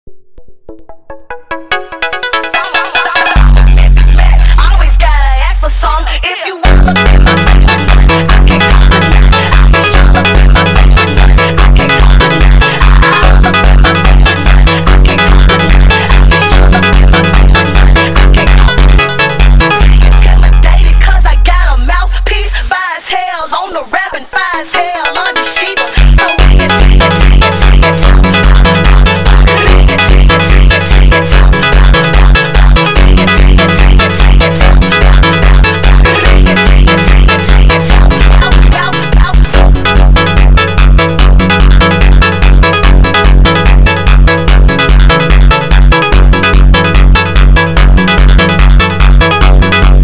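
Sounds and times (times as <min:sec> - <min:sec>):
sped up montagem music: 0:00.0 - 0:23.7, 0:24.3 - 0:50.0.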